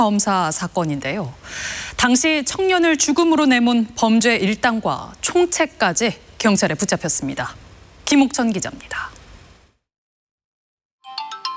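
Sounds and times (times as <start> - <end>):
speech: 0.0 - 9.1
phone ringtone announcing an incoming call: 11.0 - 11.5.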